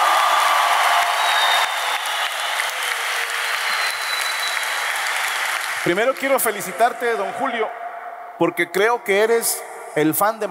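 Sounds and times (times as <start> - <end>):
audience applause: 0.0 - 7.3
speech: 5.9 - 7.8, 8.4 - 10.4.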